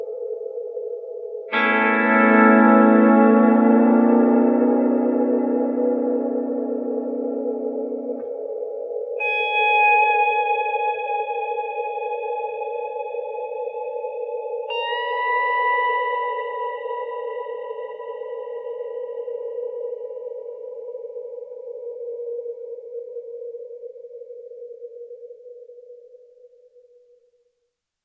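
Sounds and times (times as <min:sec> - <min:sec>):
ghostly pedal steel guitar with reverb: 0:01.5 - 0:22.9.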